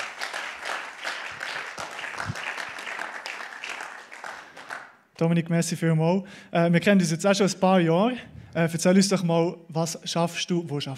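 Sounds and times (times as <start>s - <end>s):
audience applause: 0.0s - 5.0s
speech: 5.2s - 10.9s.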